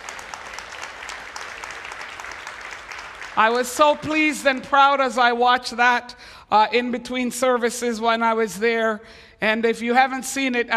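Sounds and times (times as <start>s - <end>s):
audience applause: 0.0s - 3.5s
speech: 3.4s - 10.7s.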